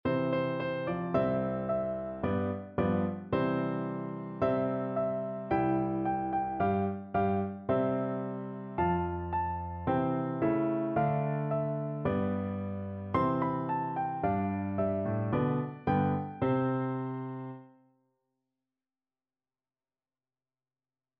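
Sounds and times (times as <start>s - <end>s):
piano duet: 0.0s - 17.7s.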